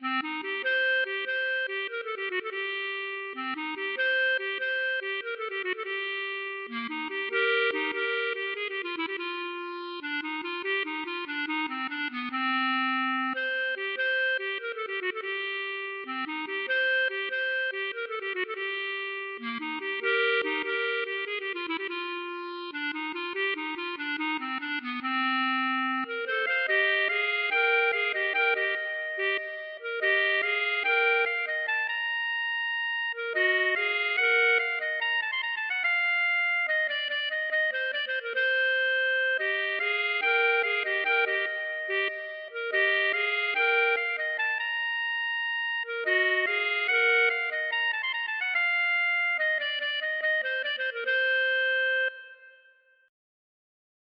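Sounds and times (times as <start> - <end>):
klezmer bulgar music: 0.0 - 52.7.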